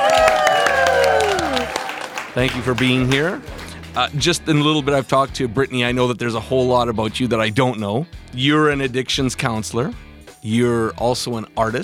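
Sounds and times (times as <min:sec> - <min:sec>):
audience applause and cheering greeting a guest onstage: 0:00.0 - 0:04.2
speech: 0:02.4 - 0:11.8.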